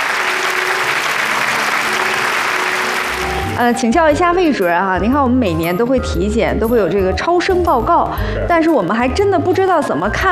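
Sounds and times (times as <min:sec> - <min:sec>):
audience applause: 0:00.0 - 0:03.6
speech: 0:03.6 - 0:10.3.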